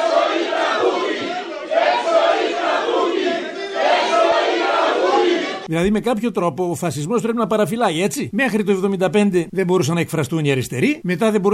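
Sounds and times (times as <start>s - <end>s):
audience shouting to drive out an interrupter: 0.0s - 5.7s
speech: 5.7s - 11.5s.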